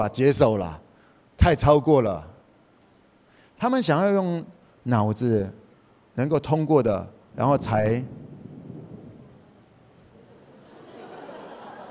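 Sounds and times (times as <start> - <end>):
speech: 0.0 - 0.8, 1.4 - 2.3, 3.6 - 5.6, 6.2 - 8.2
thunder: 7.5 - 10.6
laughter: 10.2 - 11.8.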